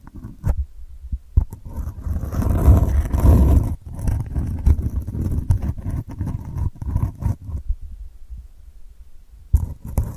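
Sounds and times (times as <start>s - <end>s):
delicate scratching: 0.0s - 0.6s, 1.4s - 7.7s, 9.5s - 10.1s.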